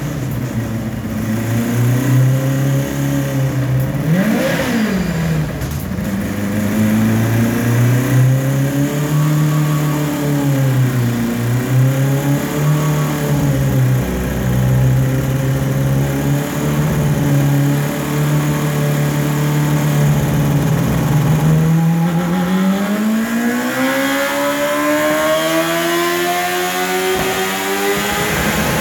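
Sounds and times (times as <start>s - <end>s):
car engine running on a dynamometer: 0.0s - 28.7s.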